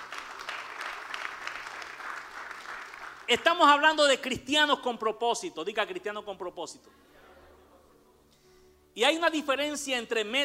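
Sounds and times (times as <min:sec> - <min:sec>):
applause: 0:00.0 - 0:03.6
speech: 0:03.3 - 0:07.1, 0:09.0 - 0:10.4.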